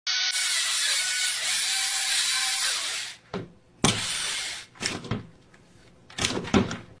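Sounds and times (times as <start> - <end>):
drill: 0.1 - 3.2, 3.9 - 4.7.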